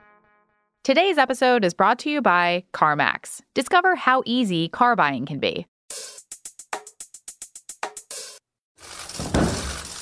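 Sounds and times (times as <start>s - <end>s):
speech: 0.8s - 6.1s
paper fluttering: 8.8s - 10.0s
thick document dropped onto a table: 9.2s - 9.8s.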